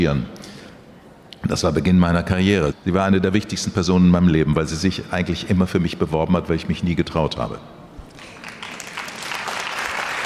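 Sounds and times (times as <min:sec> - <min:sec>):
speech: 0:00.0 - 0:00.4, 0:01.4 - 0:07.8
audience applause: 0:08.2 - 0:10.2.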